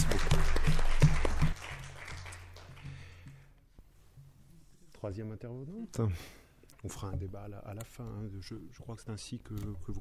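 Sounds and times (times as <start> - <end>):
audience applause: 0.0 - 3.0
speech: 5.0 - 9.9.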